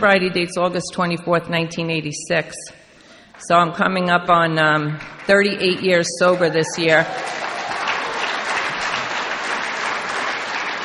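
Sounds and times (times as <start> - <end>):
speech: 0.0 - 2.8, 3.4 - 7.4
audience applause: 6.3 - 10.8.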